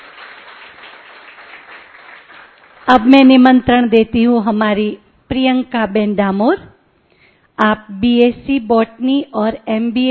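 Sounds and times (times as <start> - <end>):
audience applauding to thank a speaker at a gathering: 0.0 - 2.9
speech: 2.8 - 6.7, 7.6 - 10.0.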